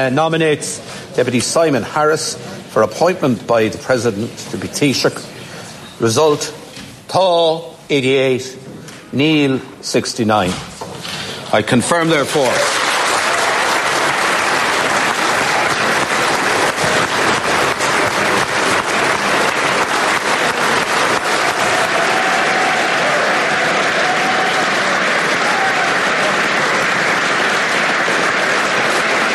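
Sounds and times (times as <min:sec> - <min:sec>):
speech: 0:00.0 - 0:05.4, 0:06.0 - 0:10.8, 0:11.5 - 0:12.8
parliamentary applause from government benches: 0:12.2 - 0:29.3.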